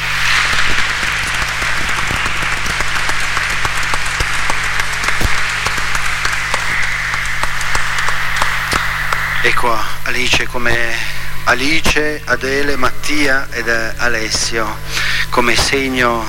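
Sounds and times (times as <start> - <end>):
audience applause: 0.0 - 9.8
speech: 9.5 - 16.2.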